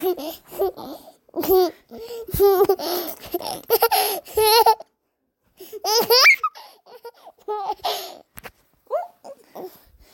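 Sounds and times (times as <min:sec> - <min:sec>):
baby giggling: 0:00.0 - 0:04.9, 0:05.7 - 0:08.2.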